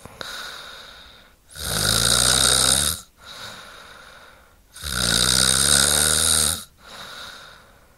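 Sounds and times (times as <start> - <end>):
woman snoring: 0.0 - 3.7, 4.7 - 7.6.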